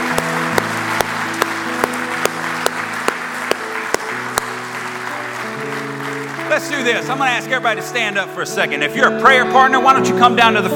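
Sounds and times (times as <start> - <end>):
audience applauding: 0.0 - 7.2
speech: 6.8 - 10.7.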